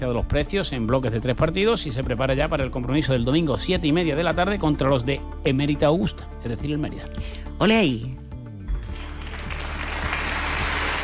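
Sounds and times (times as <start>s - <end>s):
speech: 0.0s - 8.2s
applause: 8.8s - 11.0s.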